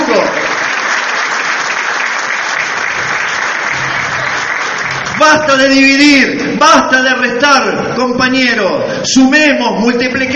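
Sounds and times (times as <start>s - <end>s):
audience applause: 0.0s - 6.0s
speech: 5.3s - 10.3s.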